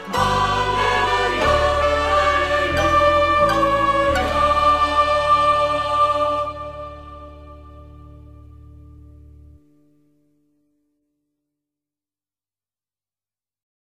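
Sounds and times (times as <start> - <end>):
Taizé chant: 0.0 - 7.7.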